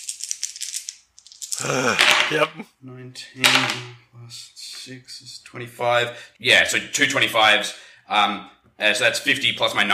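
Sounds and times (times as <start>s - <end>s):
dice being rolled: 0.0s - 2.4s
speech: 1.6s - 9.9s.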